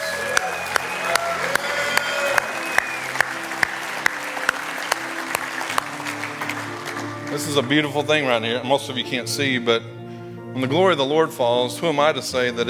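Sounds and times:
audience clapping in praise: 0:00.0 - 0:08.3
speech: 0:07.4 - 0:10.0, 0:10.6 - 0:12.6.

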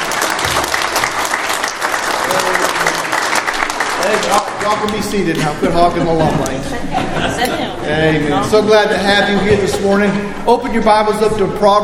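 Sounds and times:
audience applause: 0:00.0 - 0:05.5
laughter: 0:04.0 - 0:10.3
speech: 0:04.0 - 0:11.8.

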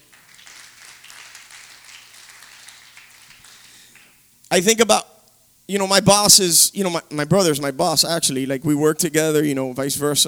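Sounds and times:
audience clapping: 0:00.0 - 0:04.4
speech: 0:04.5 - 0:05.1, 0:05.7 - 0:10.2.

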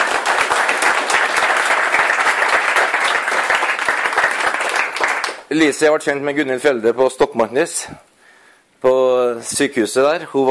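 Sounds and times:
audience applause: 0:00.0 - 0:05.5
speech: 0:05.5 - 0:08.1, 0:08.8 - 0:10.4.

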